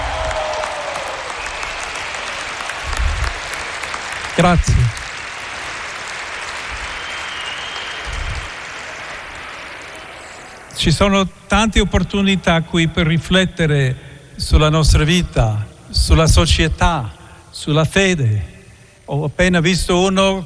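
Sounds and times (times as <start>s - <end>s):
audience applause: 0.0s - 10.9s
speech: 4.4s - 4.9s, 10.8s - 18.5s, 19.1s - 20.4s.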